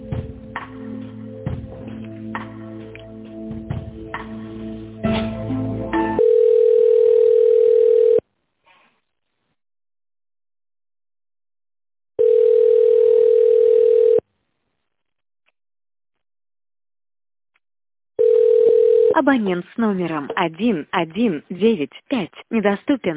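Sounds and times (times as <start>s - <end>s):
telephone ringback tone while a call is connected: 6.2s - 8.2s, 12.2s - 14.2s, 18.2s - 19.2s
speech: 19.2s - 23.1s.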